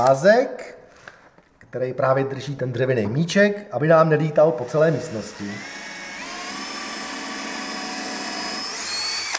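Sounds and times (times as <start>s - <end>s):
speech: 0.0s - 0.8s, 1.7s - 5.8s
power drill boring into wood: 4.6s - 9.3s.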